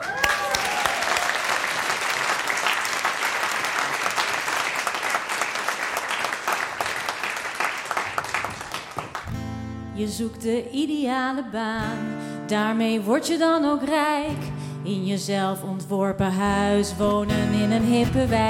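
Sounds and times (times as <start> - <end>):
person cheering: 0.0 - 1.7
audience applause: 0.0 - 9.4
speech: 10.0 - 18.4.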